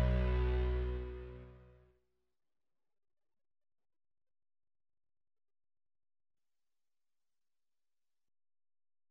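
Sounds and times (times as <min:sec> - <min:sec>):
backing track: 0:00.0 - 0:01.6.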